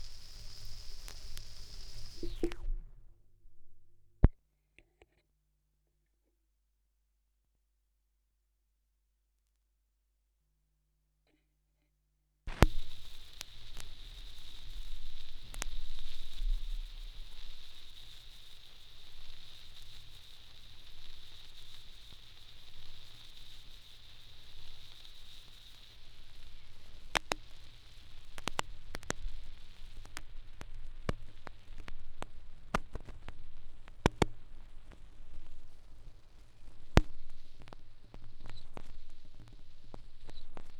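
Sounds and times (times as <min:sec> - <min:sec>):
vinyl record noise: 0:00.0 - 0:04.4, 0:12.5 - 0:40.7.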